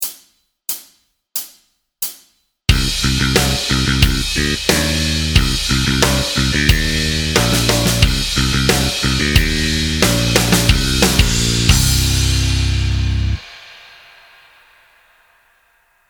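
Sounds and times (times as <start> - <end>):
backing track: 2.7 - 13.4.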